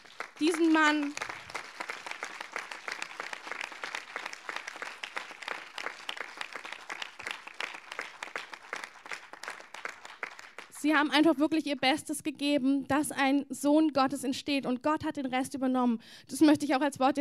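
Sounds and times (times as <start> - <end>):
audience applause: 0.0 - 10.8
speech: 0.4 - 1.2, 10.8 - 17.2.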